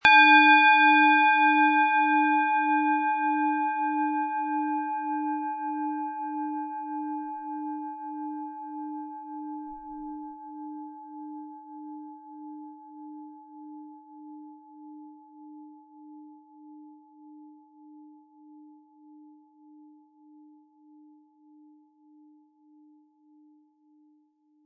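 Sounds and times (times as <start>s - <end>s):
planetary singing bowl struck with mallet: 0.0s - 5.4s.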